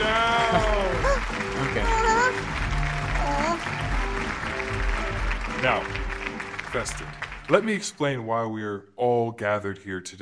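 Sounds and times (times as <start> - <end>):
crowd applause: 0.0 - 7.9
speech: 6.8 - 10.2.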